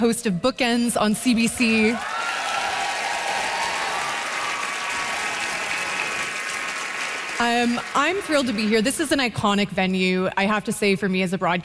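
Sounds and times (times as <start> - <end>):
speech: 0.0 - 2.2, 7.4 - 11.6
audience applause at an onstage interview at Massey Hall, Toronto: 1.9 - 9.2.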